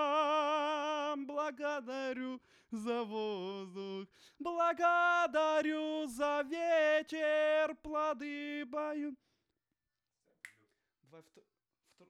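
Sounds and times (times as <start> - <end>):
vocals: 0.0 - 9.3.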